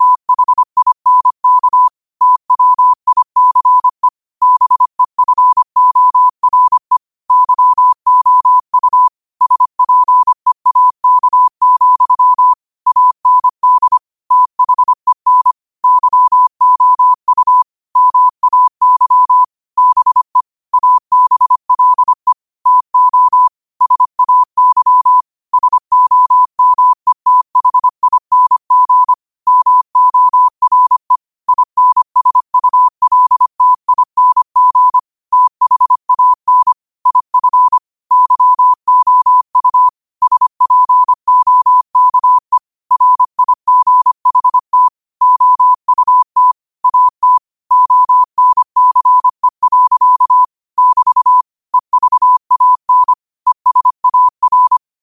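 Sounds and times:
morse code at 5 wpm: 0.0s - 55.0s.

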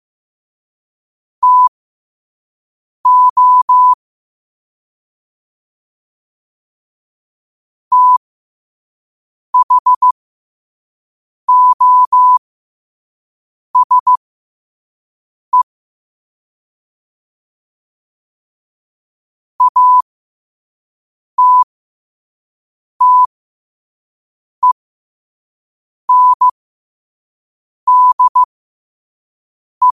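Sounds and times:
morse code at 5 wpm: 1.4s - 1.7s, 3.1s - 4.0s, 7.9s - 8.2s, 9.6s - 10.1s, 11.5s - 12.4s, 13.8s - 14.2s, 19.6s - 20.1s, 21.4s - 21.7s, 23.0s - 23.3s, 26.1s - 26.6s, 27.9s - 28.5s.

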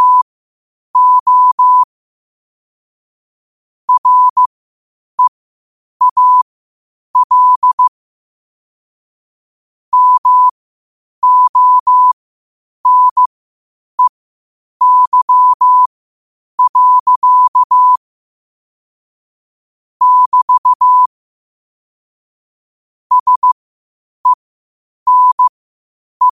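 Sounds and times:
morse code at 5 wpm: 0.0s - 0.2s, 1.0s - 1.9s, 3.9s - 4.5s, 6.0s - 6.4s, 7.2s - 7.9s, 9.9s - 10.5s, 11.2s - 12.2s, 12.9s - 13.3s, 14.8s - 15.9s, 16.6s - 18.0s, 20.0s - 21.1s, 23.1s - 23.6s, 25.1s - 25.5s, 26.2s - 26.3s.

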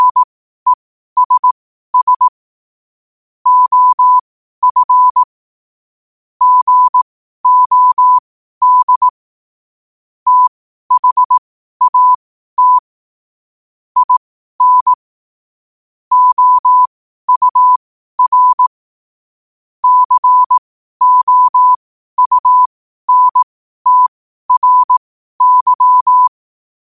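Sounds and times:
morse code at 5 wpm: 0.0s - 0.3s, 1.2s - 2.3s, 3.5s - 5.3s, 6.4s - 9.2s, 10.3s - 12.9s, 14.0s - 15.0s, 16.1s - 18.7s, 19.8s - 26.3s.

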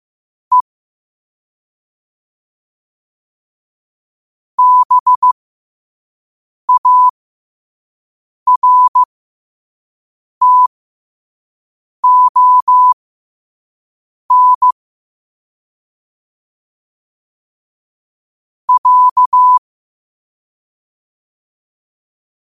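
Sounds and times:
morse code at 5 wpm: 4.6s - 5.3s, 6.7s - 7.1s, 8.5s - 9.1s, 10.4s - 10.7s, 12.0s - 13.0s, 14.3s - 14.8s, 18.7s - 19.6s.

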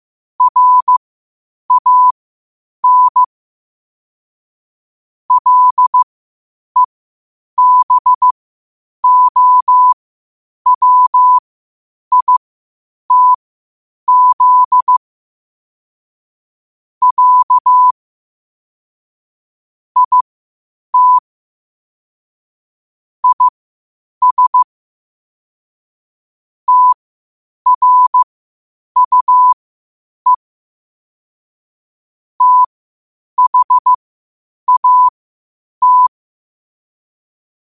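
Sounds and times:
morse code at 5 wpm: 0.4s - 1.0s, 1.7s - 2.1s, 2.8s - 3.3s, 5.3s - 6.1s, 7.6s - 8.4s, 9.0s - 10.0s, 10.7s - 11.4s, 12.1s - 12.4s, 13.1s - 13.4s, 14.1s - 15.0s, 17.0s - 18.0s, 20.0s - 20.2s, 21.0s - 21.2s, 23.2s - 23.5s, 24.2s - 24.7s, 26.7s - 27.0s, 27.7s - 28.2s, 29.0s - 29.6s, 32.4s - 32.7s, 33.4s - 34.0s, 34.7s - 35.2s, 35.8s - 36.2s.

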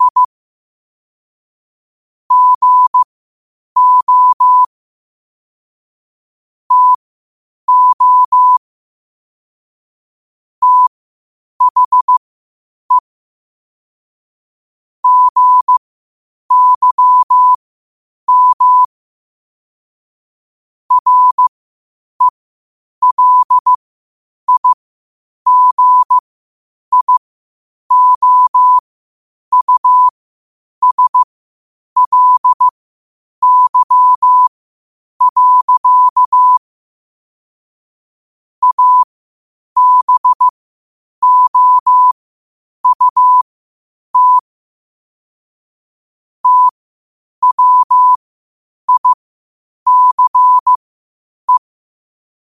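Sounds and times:
morse code at 5 wpm: 0.0s - 0.3s, 2.3s - 3.1s, 3.8s - 4.7s, 6.7s - 7.0s, 7.7s - 8.6s, 10.6s - 10.9s, 11.6s - 12.2s, 15.0s - 15.8s, 16.5s - 17.6s, 18.3s - 18.9s, 20.9s - 21.5s, 23.0s - 23.8s, 24.5s - 24.8s, 25.5s - 26.2s, 26.9s - 27.2s, 27.9s - 28.8s, 29.5s - 30.1s, 30.8s - 31.3s, 32.0s - 32.7s, 33.4s - 34.5s, 35.2s - 36.6s, 38.6s - 39.1s, 39.8s - 40.6s, 41.2s - 42.2s, 42.8s - 43.5s, 44.2s - 44.5s, 46.4s - 46.8s, 47.4s - 48.2s, 48.9s - 49.2s, 49.9s - 50.8s.

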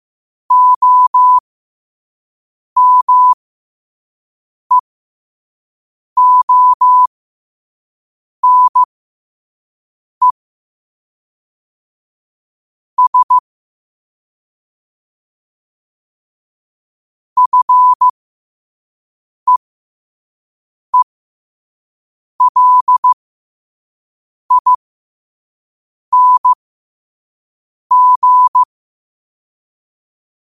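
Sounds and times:
morse code at 5 wpm: 0.5s - 1.4s, 2.8s - 3.4s, 6.2s - 7.1s, 8.4s - 8.9s, 13.0s - 13.4s, 17.4s - 18.1s, 22.4s - 23.2s, 24.5s - 24.8s, 26.1s - 26.6s, 27.9s - 28.7s.

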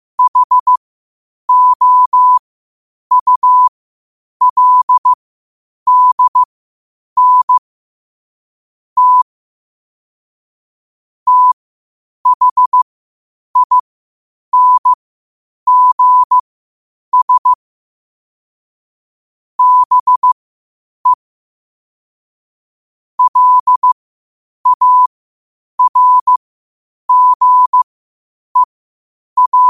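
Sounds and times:
morse code at 5 wpm: 0.2s - 0.8s, 1.5s - 2.4s, 3.1s - 3.7s, 4.4s - 5.2s, 5.9s - 6.5s, 7.2s - 7.6s, 9.0s - 9.3s, 11.3s - 11.6s, 12.3s - 12.8s, 13.6s - 13.8s, 14.6s - 15.0s, 15.7s - 16.4s, 17.1s - 17.6s, 19.6s - 20.4s, 23.2s - 24.0s, 24.6s - 25.1s, 25.8s - 26.4s, 27.1s - 27.8s, 29.4s - 29.6s.

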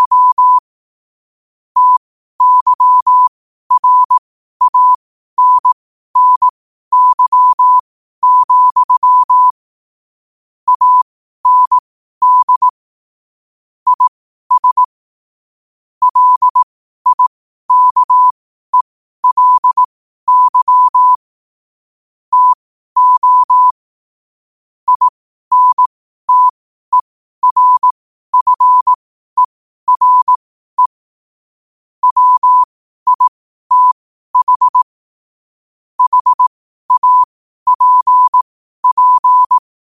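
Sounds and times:
morse code at 5 wpm: 0.0s - 0.6s, 1.8s - 9.5s, 10.7s - 12.7s, 13.9s - 14.9s, 16.0s - 21.2s, 22.3s - 23.8s, 24.9s - 31.0s, 32.0s - 35.0s, 36.0s - 39.9s.

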